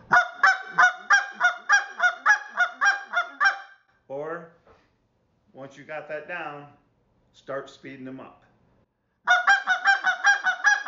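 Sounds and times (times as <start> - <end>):
goose call clucks: 0.0 - 3.8, 9.3 - 10.8
speech: 5.8 - 6.8, 7.4 - 8.4.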